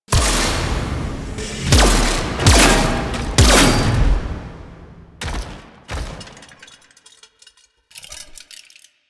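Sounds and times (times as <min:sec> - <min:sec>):
mech entrance: 0:00.0 - 0:06.7.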